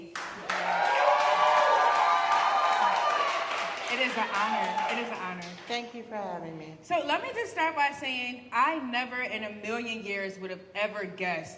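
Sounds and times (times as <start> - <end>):
studio audience applause and cheering welcoming a bestselling author onto a live talk show: 0.1 - 5.7
scattered whoops: 0.4 - 5.0
speech: 4.2 - 11.5.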